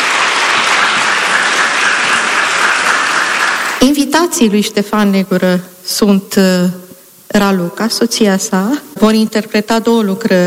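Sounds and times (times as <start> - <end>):
audience applauding the chamber orchestra: 0.0 - 3.8
speech: 3.8 - 10.4.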